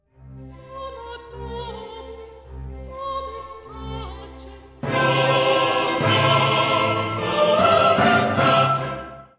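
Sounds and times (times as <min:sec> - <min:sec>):
soprano singing: 0:00.6 - 0:09.3.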